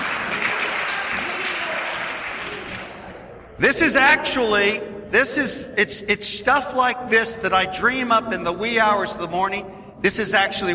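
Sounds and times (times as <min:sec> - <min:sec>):
crowd applause: 0:00.0 - 0:03.1
speech: 0:03.6 - 0:10.7.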